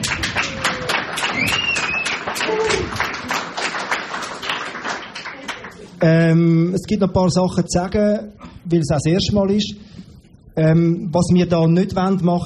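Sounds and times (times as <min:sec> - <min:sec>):
audience clapping at an event: 0:00.0 - 0:06.0
speech: 0:06.0 - 0:09.9, 0:10.6 - 0:12.4.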